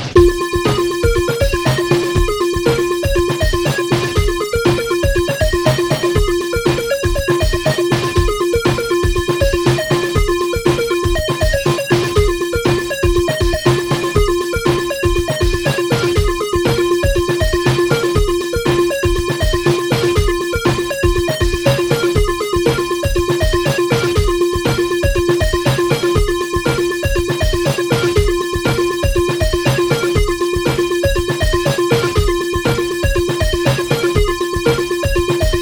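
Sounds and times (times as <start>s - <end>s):
arpeggio: 0.2s - 35.6s.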